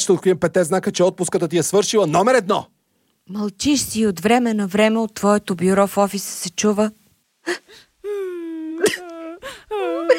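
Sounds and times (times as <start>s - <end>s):
speech: 0.0s - 9.9s
person whimpering: 7.5s - 10.1s.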